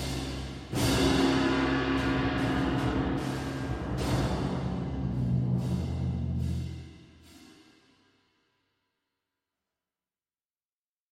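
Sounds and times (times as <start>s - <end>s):
percussion: 0.0s - 7.9s.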